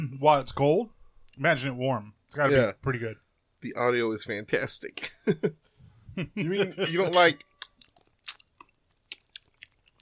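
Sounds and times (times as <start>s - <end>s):
speech: 0.2s - 7.5s
chewing and crunching of cooled food for ASMR: 7.4s - 10.0s.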